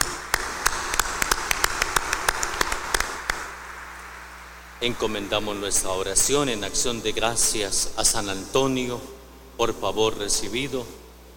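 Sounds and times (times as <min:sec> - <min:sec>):
audience applauding: 0:00.0 - 0:04.3
speech: 0:04.8 - 0:11.0.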